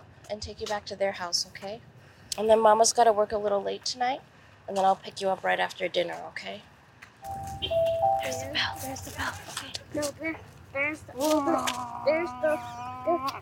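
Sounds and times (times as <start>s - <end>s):
speech: 0.3s - 7.4s, 8.2s - 13.4s
older kids' school bell ringing: 7.2s - 9.4s.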